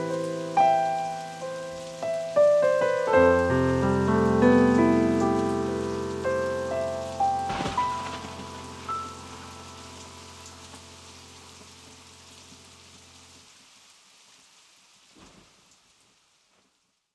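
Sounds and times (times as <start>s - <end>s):
piano piece: 0.0s - 13.3s.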